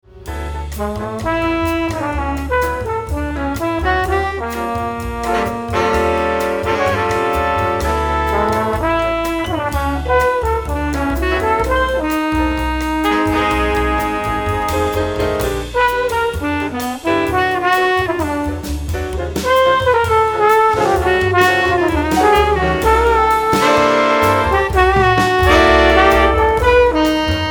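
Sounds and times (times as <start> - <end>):
trombone: 0.1 - 27.4.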